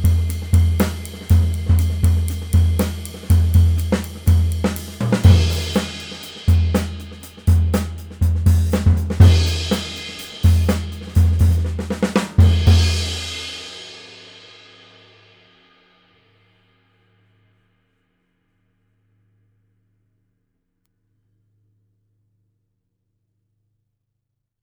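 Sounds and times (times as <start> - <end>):
22-inch Sabian Artisan cymbal: 0.0 - 17.6.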